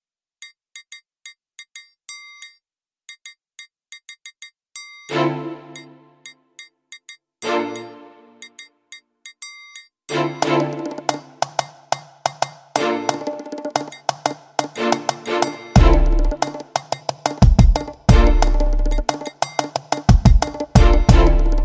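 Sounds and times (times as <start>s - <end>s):
groove music: 10.1s - 21.6s.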